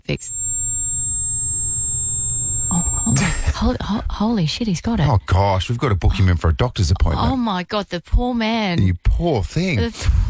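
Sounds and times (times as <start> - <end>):
high-pitched ringing tone: 0.0 - 3.7
speech: 0.1 - 0.4, 3.1 - 10.2.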